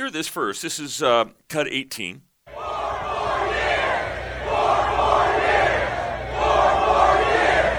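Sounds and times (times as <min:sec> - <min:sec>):
speech: 0:00.0 - 0:02.3
large crowd chanting: 0:02.5 - 0:07.7.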